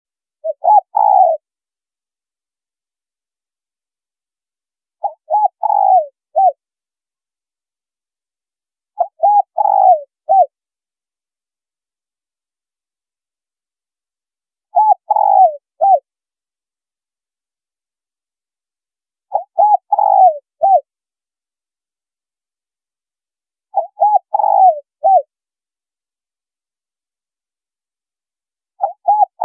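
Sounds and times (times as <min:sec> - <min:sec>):
spotted dove cooing: 0:00.4 - 0:01.5, 0:05.0 - 0:06.6, 0:09.0 - 0:10.5, 0:14.7 - 0:16.1, 0:19.3 - 0:20.9, 0:23.7 - 0:25.3, 0:28.8 - 0:29.4.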